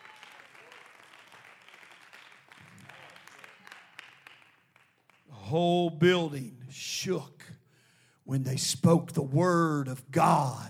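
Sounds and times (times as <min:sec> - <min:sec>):
audience clapping hands: 0:00.0 - 0:05.6
speech: 0:05.5 - 0:07.4, 0:08.3 - 0:10.6.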